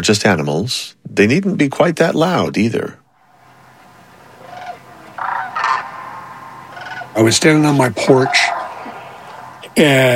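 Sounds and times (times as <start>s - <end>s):
speech: 0.0s - 3.0s, 7.2s - 8.6s, 9.8s - 10.1s
sandhill cranes calling in wetlands at night: 3.1s - 10.1s.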